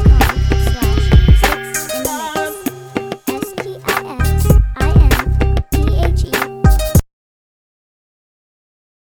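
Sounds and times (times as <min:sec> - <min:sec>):
club music: 0:00.0 - 0:07.0.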